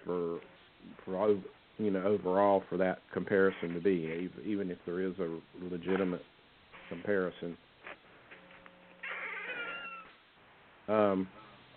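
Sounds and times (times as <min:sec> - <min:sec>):
speech: 0:00.1 - 0:07.7, 0:10.9 - 0:11.4
squeaky door sound effect: 0:09.0 - 0:10.2.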